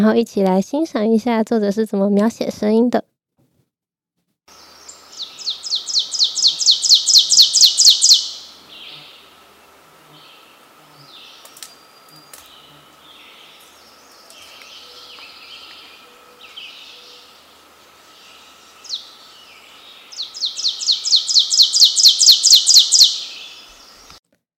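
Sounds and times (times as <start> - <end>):
speech: 0.0 - 3.1
ovenbird song: 4.5 - 9.4, 10.1 - 24.2.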